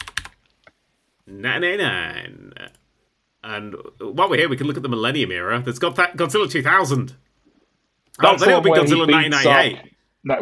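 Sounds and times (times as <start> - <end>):
keystrokes on a computer keyboard: 0.0 - 0.8
speech: 1.3 - 2.7, 3.4 - 7.2, 8.2 - 10.4.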